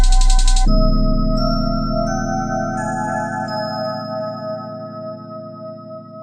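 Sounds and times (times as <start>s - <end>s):
instrumental music: 0.0s - 4.9s.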